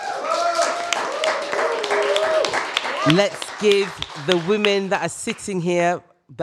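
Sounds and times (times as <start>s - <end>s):
audience applause: 0.0s - 5.1s
speech: 3.0s - 6.4s.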